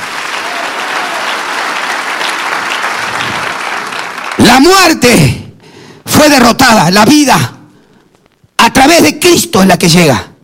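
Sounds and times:
audience applause: 0.0s - 4.7s
speech: 4.5s - 5.4s, 6.2s - 7.6s, 8.8s - 10.3s.

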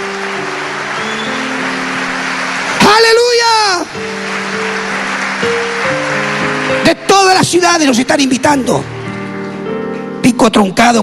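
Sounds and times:
audience applauding: 0.0s - 8.6s
speech: 7.5s - 9.0s, 10.3s - 11.0s.

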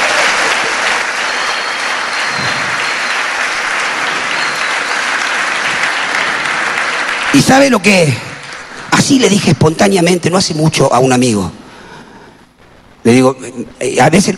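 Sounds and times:
audience applause: 0.0s - 9.1s
speech: 7.3s - 8.3s, 8.9s - 11.6s, 13.0s - 14.3s.

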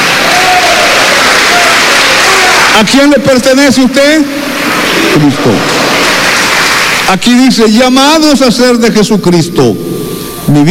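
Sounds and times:
audience applauding: 0.0s - 3.0s, 4.4s - 7.2s
speech: 2.8s - 5.8s, 7.1s - 10.6s.

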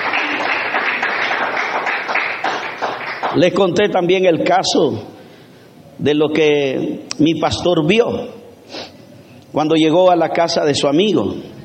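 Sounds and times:
audience applause: 0.0s - 3.4s
speech: 3.4s - 5.2s, 6.0s - 8.8s, 9.5s - 11.5s.

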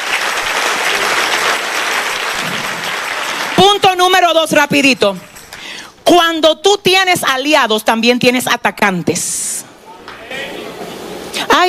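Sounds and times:
audience applause: 0.0s - 4.0s
speech: 4.0s - 5.3s, 6.1s - 9.5s.

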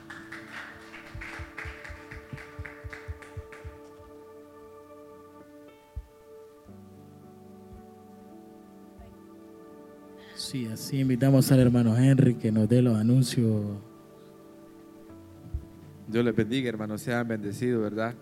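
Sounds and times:
audience clapping: 0.0s - 4.2s
sustained keyboard chords: 0.0s - 18.1s
speech: 10.5s - 13.9s, 16.1s - 18.1s.

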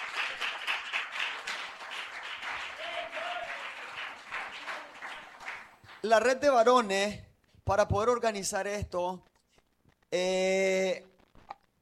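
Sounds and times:
audience applause: 0.0s - 6.0s
speech: 6.0s - 9.3s, 10.1s - 11.1s.

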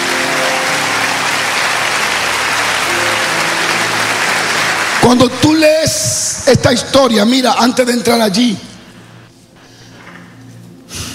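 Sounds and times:
audience applauding loudly: 0.0s - 6.6s
speech: 5.0s - 8.7s.

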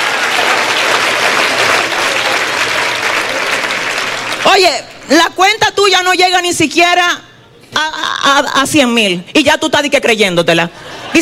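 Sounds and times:
audience clapping: 0.0s - 5.1s
speech: 4.4s - 7.2s, 7.8s - 11.2s.

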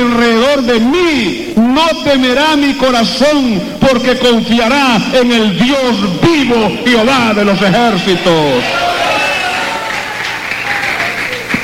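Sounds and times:
speech: 0.7s - 9.0s
large group applauding: 8.4s - 11.6s.

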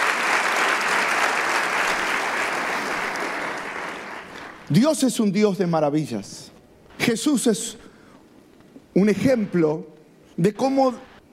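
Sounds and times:
congregation applauding during a church service: 0.0s - 5.0s
speech: 4.7s - 6.4s, 7.1s - 7.8s, 9.0s - 11.1s.

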